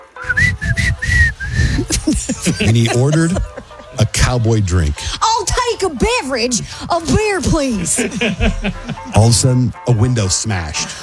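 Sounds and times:
person whistling a cowboy tune while walking into a bar: 0.0s - 2.7s
laughter: 0.8s - 5.0s, 7.2s - 9.6s
speech: 2.2s - 11.0s.

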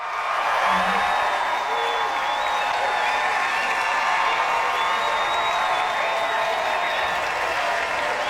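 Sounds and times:
audience applause and cheering at a stage musical: 0.0s - 8.2s
high whistle from the audience: 0.5s - 7.1s.

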